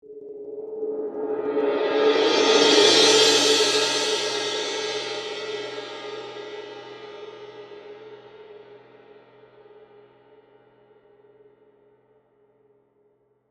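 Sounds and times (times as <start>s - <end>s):
suspended cymbal: 0.3s - 9.4s.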